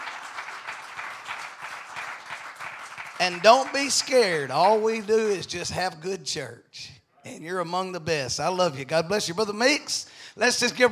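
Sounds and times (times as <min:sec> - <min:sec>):
audience applauding: 0:00.0 - 0:05.4
speech: 0:03.2 - 0:10.9.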